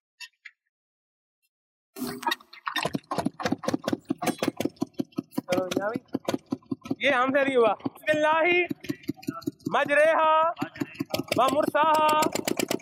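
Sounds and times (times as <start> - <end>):
speech: 2.0 - 3.0, 5.6 - 6.4, 7.0 - 8.8, 9.7 - 10.7, 11.4 - 12.6
engine starting and chugging: 2.9 - 12.8.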